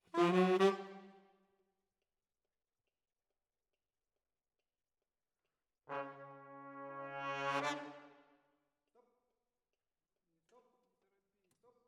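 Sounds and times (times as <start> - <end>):
saxophone: 0.0 - 1.2, 5.9 - 8.2.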